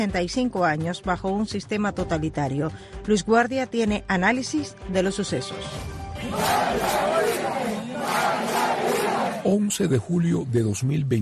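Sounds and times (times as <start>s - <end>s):
speech: 0.0s - 7.1s, 9.4s - 11.2s
hundreds of protesters shouting: 6.2s - 9.5s.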